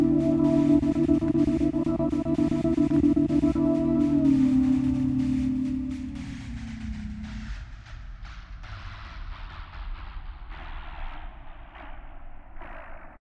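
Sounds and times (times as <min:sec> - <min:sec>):
distant synth pad: 0:00.0 - 0:07.4.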